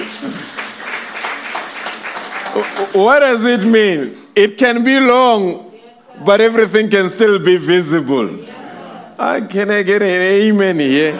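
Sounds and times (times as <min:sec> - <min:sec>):
group applauding: 0:00.0 - 0:03.7
speech: 0:02.6 - 0:08.5, 0:09.2 - 0:11.1.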